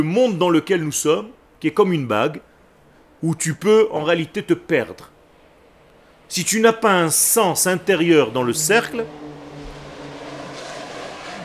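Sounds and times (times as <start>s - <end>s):
speech: 0.0s - 2.5s, 3.2s - 5.1s, 6.3s - 9.4s
Canadair water-bomber aircraft flying over while fighting fires: 7.0s - 11.4s.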